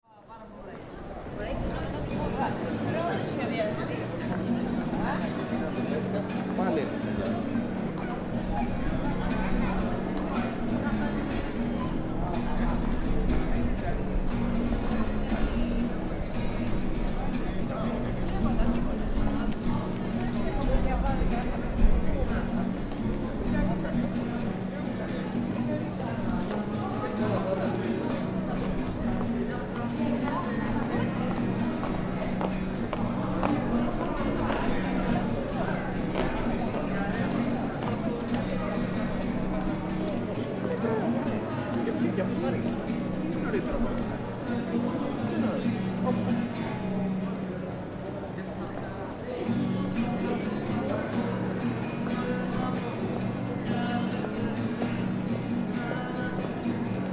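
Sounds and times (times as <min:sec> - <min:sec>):
busker's acoustic guitar: 0:00.8 - 0:57.1
busker man singing in Greek: 0:51.9 - 0:57.1.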